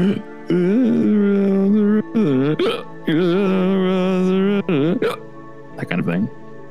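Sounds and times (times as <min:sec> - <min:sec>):
speech: 0:00.0 - 0:00.7, 0:02.0 - 0:04.3, 0:05.8 - 0:06.4
man humming a tipsy tune: 0:00.0 - 0:05.2
imitated drunken hiccup: 0:02.2 - 0:03.4, 0:04.7 - 0:05.2.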